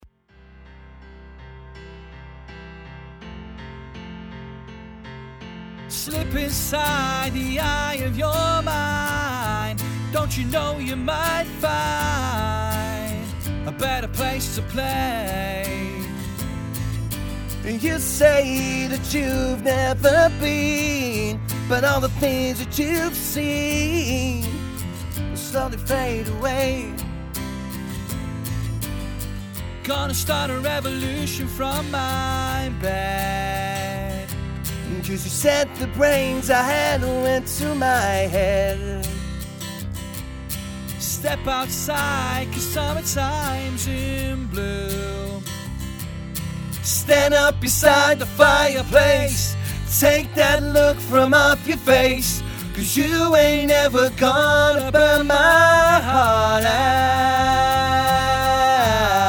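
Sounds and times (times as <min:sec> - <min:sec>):
unplugged lounge music: 0:05.9 - 0:59.2.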